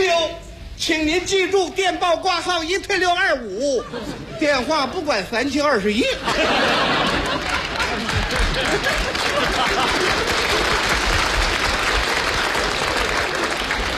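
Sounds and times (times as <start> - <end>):
speech: 0.8 - 10.4
people chuckling: 3.6 - 4.6, 6.0 - 11.4
audience applause: 6.4 - 13.9.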